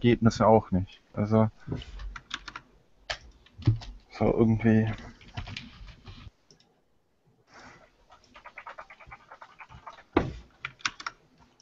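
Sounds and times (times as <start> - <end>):
speech: 0.0 - 2.1, 3.6 - 5.1
typing on a computer keyboard: 2.0 - 4.0, 4.9 - 6.7, 8.1 - 11.5.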